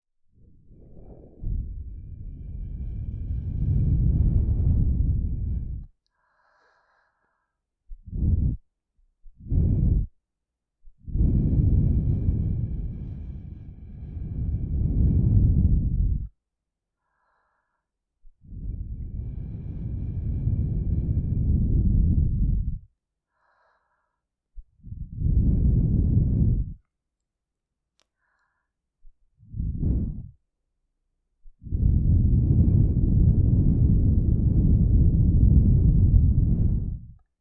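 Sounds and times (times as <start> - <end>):
blowing through a straw into ears: 0.6 - 5.9, 8.0 - 8.6, 9.4 - 10.1, 11.1 - 16.3, 18.5 - 22.9, 24.9 - 26.8, 29.4 - 30.4, 31.6 - 37.2.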